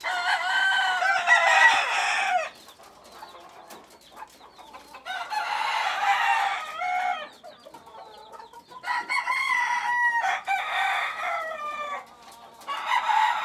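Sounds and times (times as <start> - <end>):
chicken crowing in a coop: 0.0 - 2.5, 5.1 - 7.3, 8.8 - 12.1, 12.7 - 13.4.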